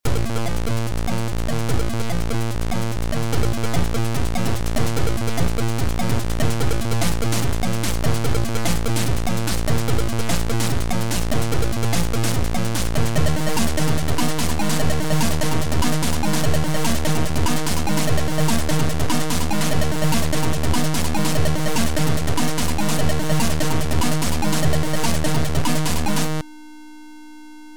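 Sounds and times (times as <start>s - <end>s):
trance music: 0.1s - 26.4s.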